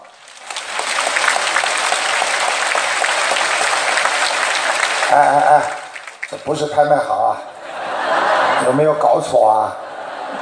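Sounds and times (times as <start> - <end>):
audience applause: 0.0 - 6.7
laughter: 3.0 - 10.4
speech: 5.1 - 7.5, 8.6 - 9.8.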